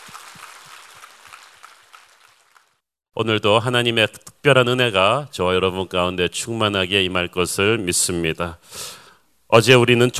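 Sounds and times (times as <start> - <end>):
audience applause: 0.0 - 2.8
speech: 3.2 - 10.1.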